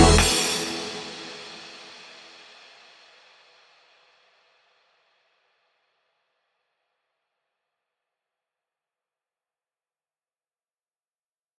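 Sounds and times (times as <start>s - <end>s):
tropical remix music: 0.0s - 2.0s.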